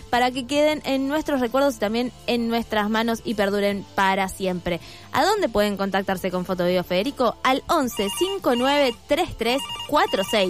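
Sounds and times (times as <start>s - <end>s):
speech: 0.1s - 10.4s
telephone ringtone for incoming call at a photo printing business: 7.9s - 10.4s.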